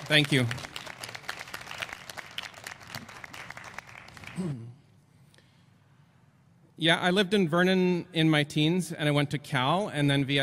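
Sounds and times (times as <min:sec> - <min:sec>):
audience applause: 0:00.0 - 0:04.5
speech: 0:00.1 - 0:00.7, 0:04.4 - 0:04.8, 0:06.8 - 0:10.4.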